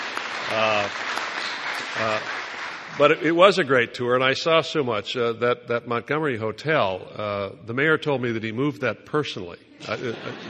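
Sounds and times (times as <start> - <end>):
audience applause: 0.0 - 3.5
speech: 0.5 - 1.3, 2.0 - 10.4
laughter: 9.8 - 10.4.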